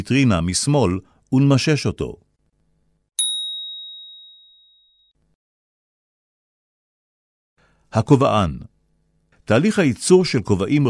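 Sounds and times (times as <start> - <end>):
speech: 0.0 - 2.3, 7.9 - 8.7, 9.5 - 10.8
bell ding: 3.2 - 5.1.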